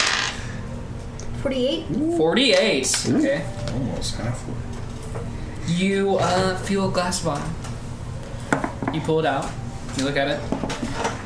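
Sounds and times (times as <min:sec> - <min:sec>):
dice clattering across a hard tabletop: 0:00.0 - 0:00.4
speech: 0:01.4 - 0:07.6, 0:08.9 - 0:10.8.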